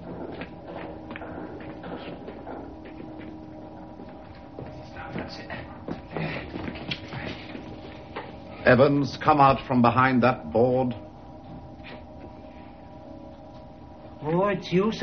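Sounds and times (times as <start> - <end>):
footsteps approaching: 0.0 - 8.7, 11.0 - 13.8
speech: 8.7 - 11.1, 14.3 - 15.0.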